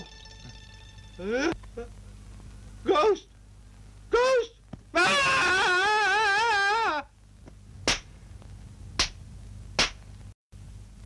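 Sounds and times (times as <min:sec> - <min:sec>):
speech: 0:01.2 - 0:02.0, 0:02.8 - 0:03.3
person yelling: 0:04.1 - 0:07.1.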